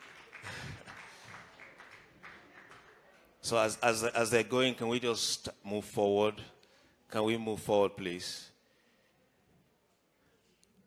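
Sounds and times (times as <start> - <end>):
audience clapping hands: 0.0 - 3.3
speech: 3.5 - 8.5.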